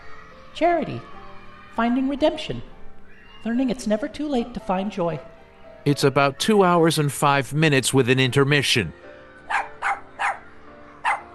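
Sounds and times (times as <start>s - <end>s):
speech: 0.6s - 1.2s, 1.8s - 2.7s, 3.4s - 9.1s
dog barking: 9.5s - 11.3s.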